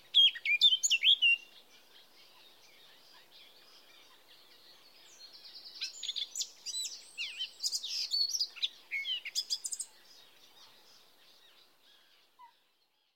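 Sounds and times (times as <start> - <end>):
Eurasian blackcap Sylvia atricapilla: 0.0 - 1.7, 4.3 - 10.3.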